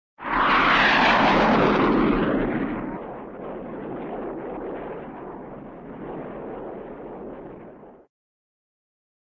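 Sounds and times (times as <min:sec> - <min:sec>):
F-84 jet airplane passing by: 0:00.2 - 0:07.5.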